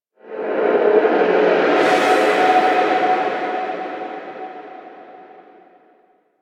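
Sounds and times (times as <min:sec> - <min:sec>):
shrine ghost cry: 0:00.8 - 0:05.6.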